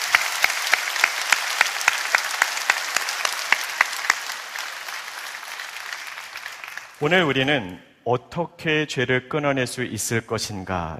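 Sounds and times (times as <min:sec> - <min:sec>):
audience applause: 0:00.0 - 0:07.7
speech: 0:07.0 - 0:10.9.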